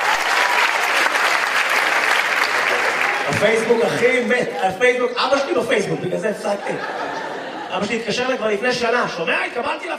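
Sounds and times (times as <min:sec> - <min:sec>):
audience applause: 0:00.0 - 0:04.6
speech: 0:03.3 - 0:07.1, 0:07.7 - 0:09.9
laughter: 0:05.7 - 0:08.8.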